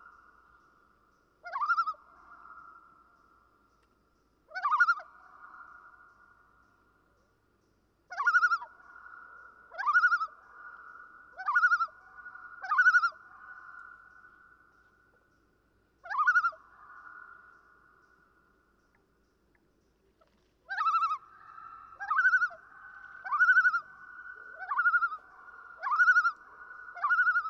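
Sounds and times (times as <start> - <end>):
common loon tremolo calls: 8.1 - 14.8, 16.0 - 18.2, 20.7 - 27.4.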